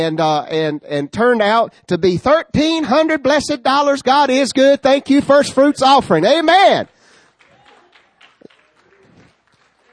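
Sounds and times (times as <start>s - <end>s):
speech: 0.0s - 6.9s
faint audience clapping: 6.8s - 9.9s.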